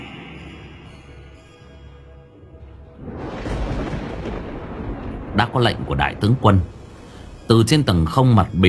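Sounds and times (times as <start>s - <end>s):
thunder-and-lightning sound effect rumble: 3.0s - 8.1s
speech: 5.4s - 6.8s, 7.5s - 8.6s.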